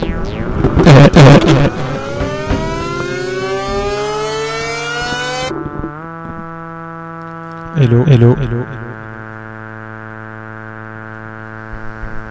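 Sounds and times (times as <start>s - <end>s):
fire alarm siren winding up: 0.0s - 5.6s
speech: 0.8s - 1.8s, 7.9s - 8.9s.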